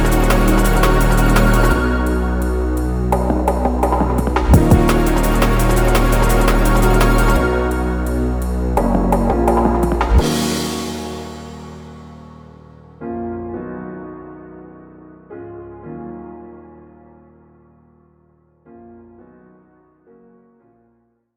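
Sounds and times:
instrumental music: 0:00.0 - 0:15.1.

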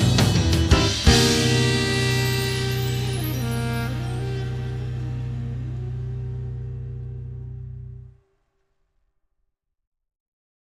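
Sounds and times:
jazz music: 0:00.0 - 0:08.2.

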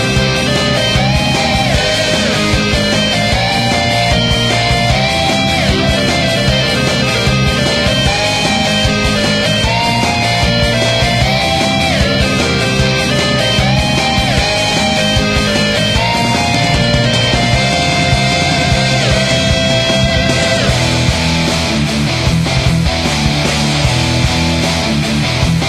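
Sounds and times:
neo rock background music: 0:00.0 - 0:25.6.

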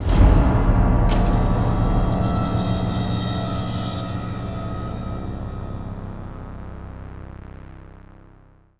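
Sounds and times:
percussion sting: 0:00.0 - 0:06.8.

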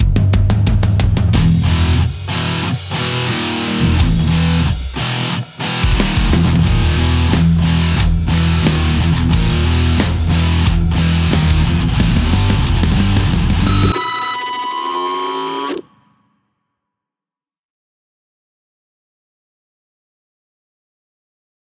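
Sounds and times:
heavy rock music: 0:00.0 - 0:15.8.

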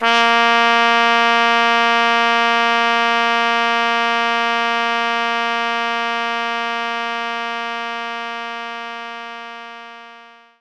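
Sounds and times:
trumpet playing A sharp 3: 0:00.0 - 0:10.6.

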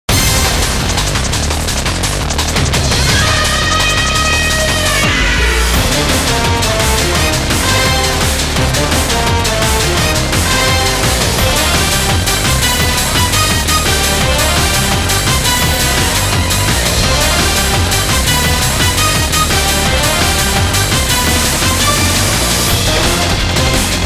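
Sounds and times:
background music: 0:00.1 - 0:24.0.

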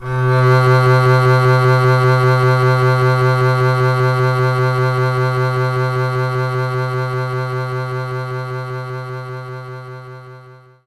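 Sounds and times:
double bass note C3: 0:00.0 - 0:07.6.

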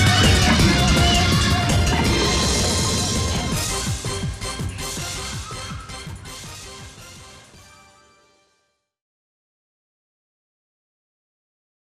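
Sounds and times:
background music: 0:00.0 - 0:08.9.

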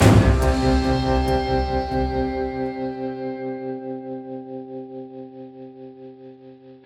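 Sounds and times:
combat loop end: 0:00.0 - 0:03.0.

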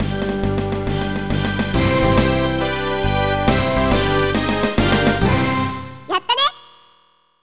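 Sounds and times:
stage clear jingle: 0:00.0 - 0:06.4.

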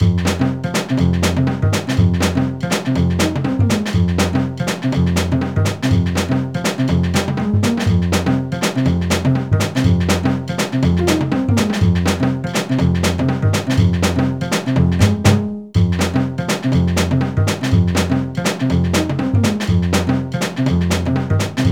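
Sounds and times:
creche background music: 0:00.0 - 0:21.7.

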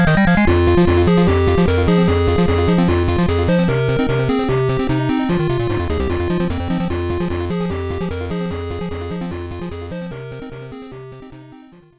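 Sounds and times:
monster battle music: 0:00.0 - 0:09.2.

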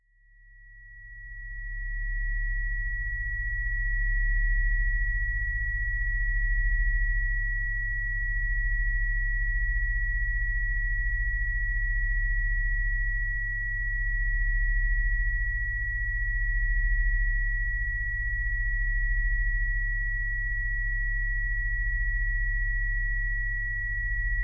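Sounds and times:
tinnitus ringing tone: 0:00.3 - 0:24.4.

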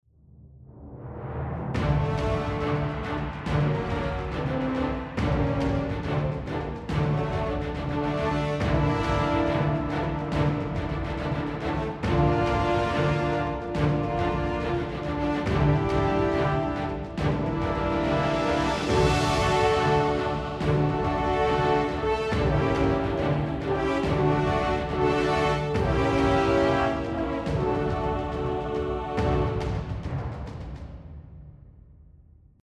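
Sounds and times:
tense music: 0:00.3 - 0:32.1.

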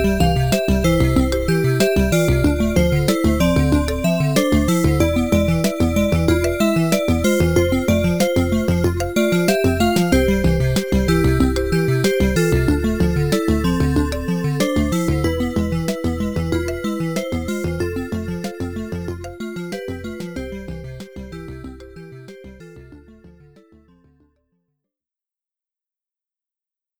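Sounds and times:
jungle music: 0:00.0 - 0:19.4.

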